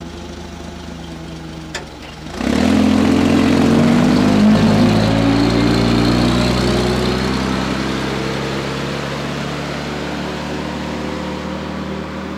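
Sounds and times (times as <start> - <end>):
forklift driving out: 0.0 - 12.3.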